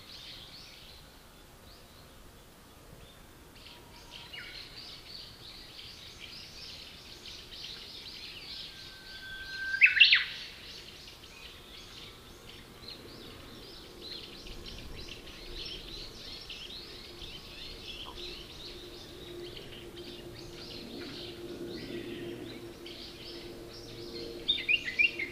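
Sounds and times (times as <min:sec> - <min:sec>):
bush warbler singing: 0:03.0 - 0:25.3.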